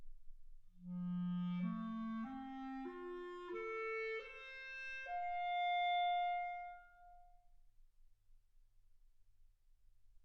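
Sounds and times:
clarinet: 0.8 - 7.4.

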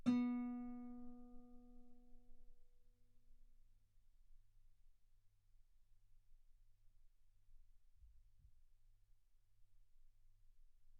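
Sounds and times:
guitar B3 note on B string played fortissimo: 0.0 - 1.3.

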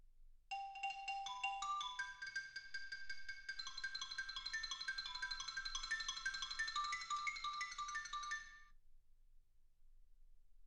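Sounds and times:
xylophone: 0.5 - 8.7.

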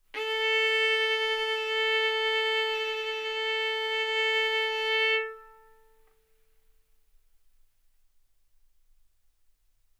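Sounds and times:
violin arco on A string: 0.2 - 6.0.

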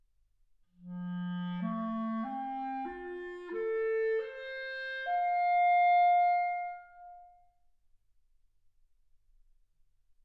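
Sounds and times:
clarinet: 0.8 - 7.6.

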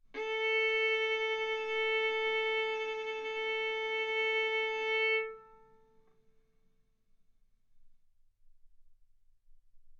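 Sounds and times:
violin bowed arco notes: 0.0 - 6.1.

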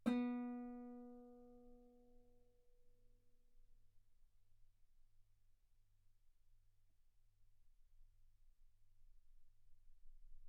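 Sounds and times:
guitar B3 note on B string played fortissimo: 0.0 - 1.5.

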